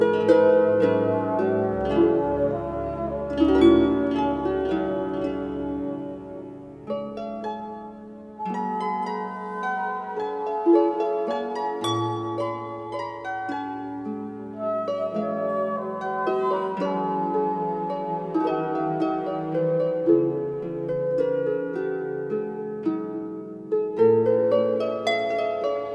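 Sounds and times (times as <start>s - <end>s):
dulcimer: 0.0s - 25.9s
harp: 0.0s - 25.9s.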